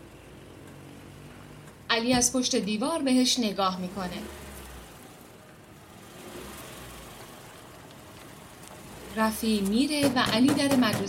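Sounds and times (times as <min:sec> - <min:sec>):
Saipa Pride car engine pulling away: 0:00.0 - 0:10.9
speech: 0:02.0 - 0:04.4, 0:09.2 - 0:11.0.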